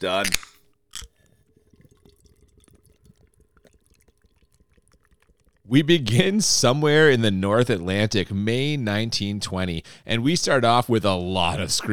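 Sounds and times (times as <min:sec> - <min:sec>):
speech: 0:00.0 - 0:00.4, 0:05.7 - 0:11.9
beer bottle or can opening hiss: 0:00.2 - 0:01.1
beer pouring into a glass: 0:01.0 - 0:07.6.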